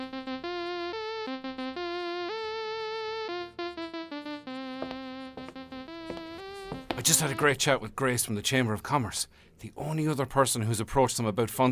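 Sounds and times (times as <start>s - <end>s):
old wristwatch alarm playing a buzzy electronic melody: 0.0s - 7.6s
speech: 7.0s - 11.7s.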